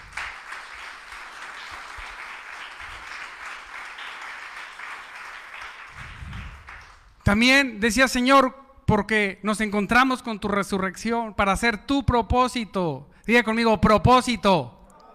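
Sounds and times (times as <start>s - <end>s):
audience applauding: 0.0s - 7.1s
speech: 7.3s - 14.8s.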